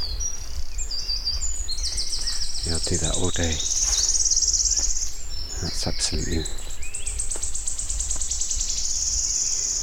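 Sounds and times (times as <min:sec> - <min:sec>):
wood warbler singing: 0:00.0 - 0:09.8
speech: 0:02.7 - 0:03.8, 0:05.6 - 0:06.7.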